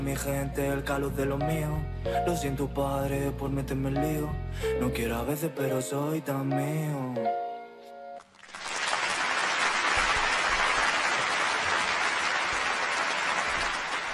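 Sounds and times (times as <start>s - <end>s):
speech: 0.1s - 7.4s
applause: 8.2s - 14.1s.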